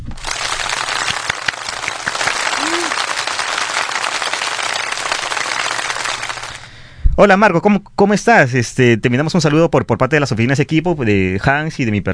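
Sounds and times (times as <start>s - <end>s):
welcome applause: 0.0s - 6.6s
speech: 7.2s - 12.1s.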